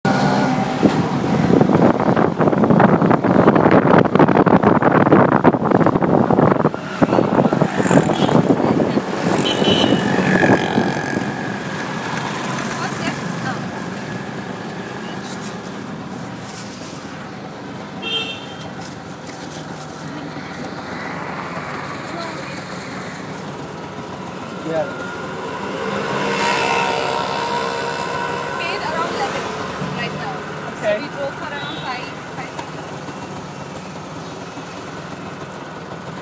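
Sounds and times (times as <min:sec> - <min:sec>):
passing vehicles: 0:00.0 - 0:36.1
rattling rickshaw engine at Pali Hill: 0:00.0 - 0:36.1
steady traffic rumble: 0:00.0 - 0:36.1
voices: 0:06.6 - 0:16.1, 0:18.6 - 0:33.6.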